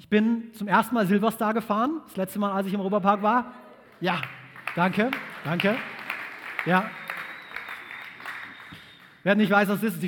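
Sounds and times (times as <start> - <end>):
speech: 0.0 - 6.0, 6.6 - 7.0, 9.2 - 10.0
crowd applauding: 3.3 - 9.3.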